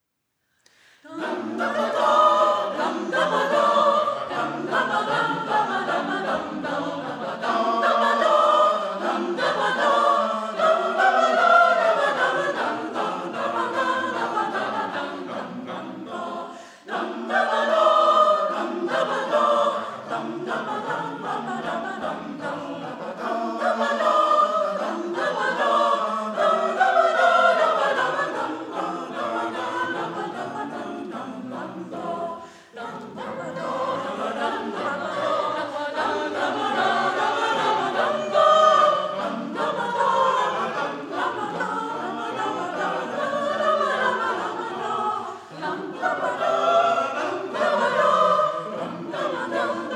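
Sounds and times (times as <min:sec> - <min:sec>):
gavotte: 0:00.6 - 0:49.9.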